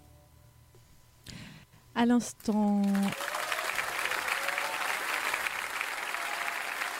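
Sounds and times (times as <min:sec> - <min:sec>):
speech: 0:02.0 - 0:03.3
live concert applause: 0:02.8 - 0:06.9.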